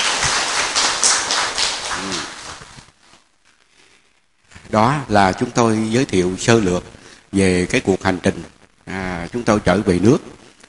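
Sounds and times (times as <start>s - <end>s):
round of applause: 0.0s - 2.8s
speech: 4.7s - 10.4s.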